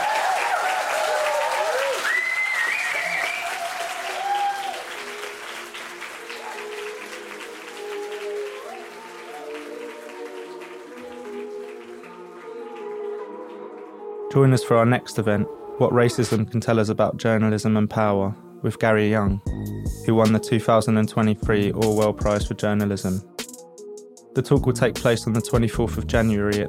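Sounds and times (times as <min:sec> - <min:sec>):
audience round of applause: 0:00.0 - 0:13.9
speech: 0:14.3 - 0:23.3, 0:24.4 - 0:26.6.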